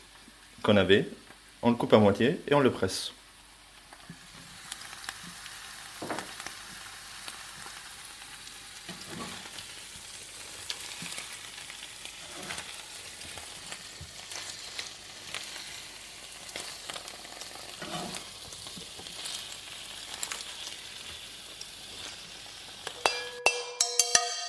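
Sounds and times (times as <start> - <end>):
chard leaves frying over high heat: 0.0 - 23.1
speech: 0.6 - 3.2
stirring scrapes and clinks: 17.8 - 18.3.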